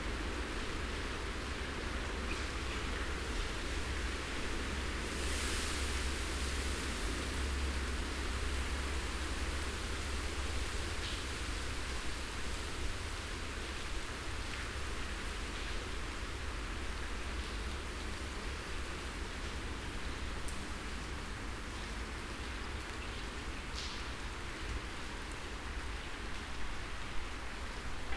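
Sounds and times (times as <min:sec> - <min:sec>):
freezing wind: 0:00.0 - 0:28.1
rain: 0:00.0 - 0:28.1.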